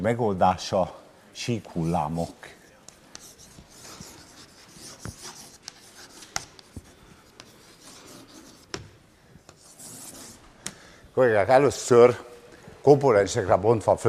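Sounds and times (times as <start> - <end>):
speech: 0.0 - 2.6, 11.2 - 14.0
writing an equation on a board: 2.6 - 10.8.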